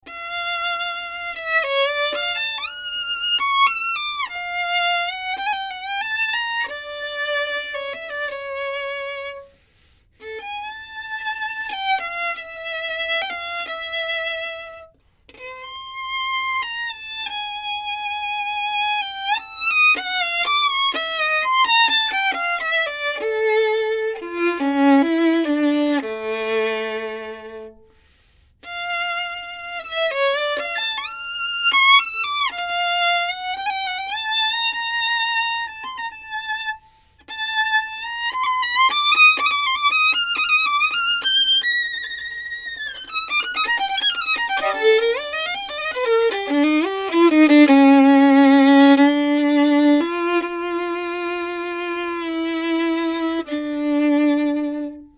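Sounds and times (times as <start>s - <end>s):
violin: 0.0s - 55.1s.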